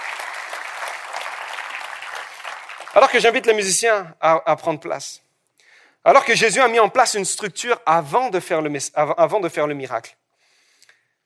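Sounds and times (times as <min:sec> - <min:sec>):
audience applause: 0:00.0 - 0:03.4
speech: 0:03.0 - 0:05.2, 0:06.0 - 0:10.2.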